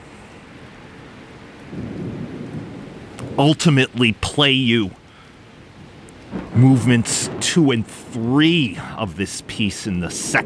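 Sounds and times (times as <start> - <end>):
falling rain: 0.0 - 10.4
deep rumble of thunder: 1.6 - 4.3, 5.8 - 10.4
speech: 3.4 - 5.0, 6.6 - 10.4.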